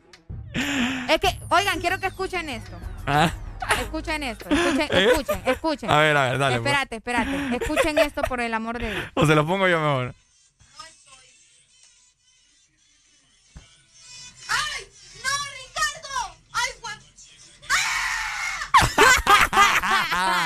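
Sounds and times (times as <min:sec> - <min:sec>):
speech: 0:00.6 - 0:10.2
laughter: 0:03.1 - 0:09.2, 0:18.7 - 0:20.4
person screaming at the moment of a bite: 0:17.7 - 0:18.7.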